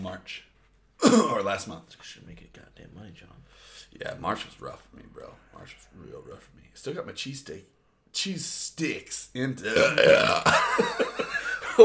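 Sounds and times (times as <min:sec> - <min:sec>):
speech: 0:00.1 - 0:11.2
burp after eating cheese sticks: 0:09.6 - 0:10.6
laughter: 0:10.4 - 0:11.8.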